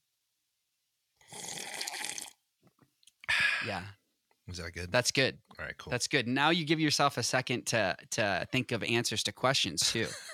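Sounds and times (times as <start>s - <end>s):
exaggerated slurping of coffee: 1.2s - 2.4s
speech: 3.6s - 10.3s.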